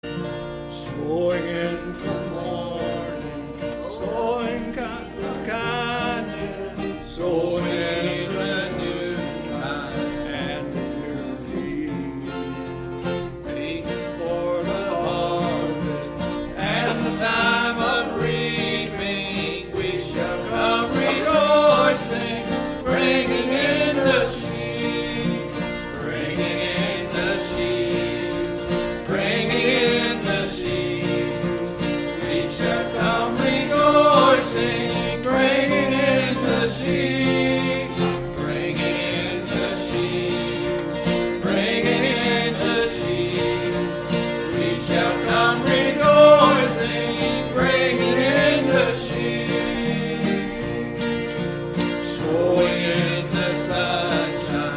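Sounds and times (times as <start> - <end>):
choir singing: 0.1 - 54.7.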